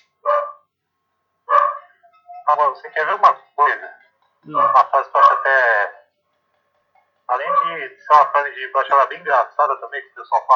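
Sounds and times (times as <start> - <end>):
dog barking: 0.2 - 0.7, 1.5 - 2.1
speech: 2.5 - 6.0, 7.4 - 10.5.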